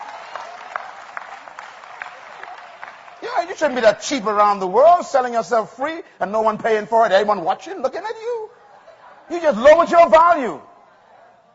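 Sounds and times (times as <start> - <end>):
church congregation clapping: 0.0 - 4.4
speech: 3.2 - 8.6, 9.3 - 10.7.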